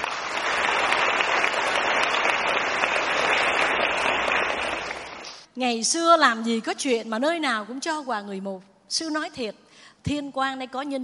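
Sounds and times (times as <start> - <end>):
large crowd applauding: 0.0 - 5.5
speech: 5.6 - 11.0.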